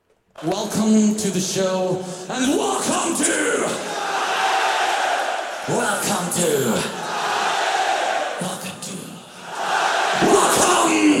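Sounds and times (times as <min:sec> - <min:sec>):
speech: 0:00.4 - 0:04.0, 0:05.7 - 0:07.0
crowd roaring at a live concert by a German band: 0:03.7 - 0:08.4, 0:09.4 - 0:11.1.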